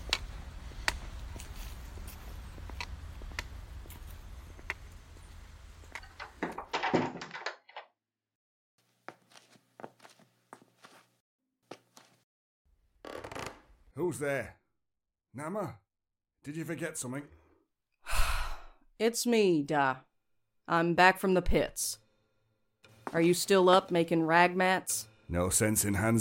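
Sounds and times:
soft indoor taps and footsteps: 0:00.0 - 0:04.8, 0:09.0 - 0:12.2
outdoor ambience: 0:00.0 - 0:07.8
speech: 0:14.0 - 0:14.6, 0:15.4 - 0:15.8, 0:16.4 - 0:17.4, 0:19.0 - 0:20.1, 0:20.7 - 0:22.0, 0:23.1 - 0:26.1.

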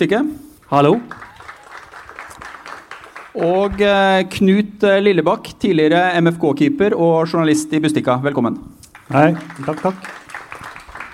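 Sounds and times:
speech: 0:00.0 - 0:01.3, 0:03.4 - 0:10.2
audience applause: 0:01.1 - 0:03.8, 0:09.0 - 0:11.1.

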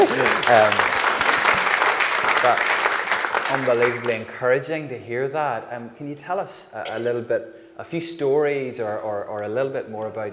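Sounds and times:
speech: 0:00.0 - 0:00.9, 0:02.4 - 0:02.8, 0:03.5 - 0:10.3
audience applauding: 0:00.0 - 0:04.3.

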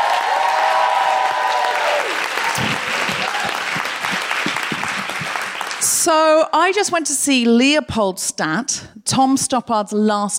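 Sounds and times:
audience applause greeting a comedian walking on stage: 0:00.0 - 0:06.0
speech: 0:06.0 - 0:10.3.

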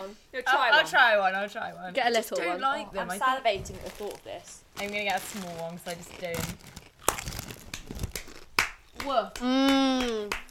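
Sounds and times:
speech: 0:00.1 - 0:06.8, 0:09.0 - 0:10.4
plastic snack packet crinkling: 0:03.5 - 0:08.6.

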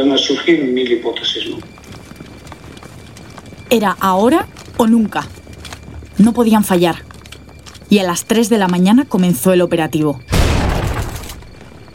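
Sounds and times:
speech: 0:00.0 - 0:01.9, 0:03.7 - 0:05.4, 0:06.2 - 0:07.1, 0:07.9 - 0:10.4
loud explosive blast: 0:10.3 - 0:11.4.

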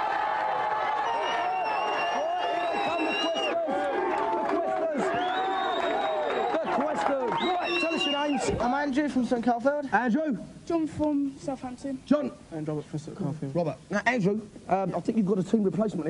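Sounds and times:
crowd cheering and whooping: 0:00.0 - 0:08.6
speech: 0:08.5 - 0:16.0.

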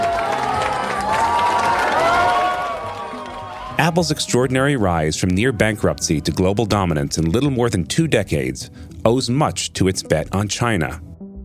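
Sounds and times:
customers cheering excitedly at the opening of a new Apple store in Beijing: 0:00.0 - 0:06.6
speech: 0:03.8 - 0:11.1.

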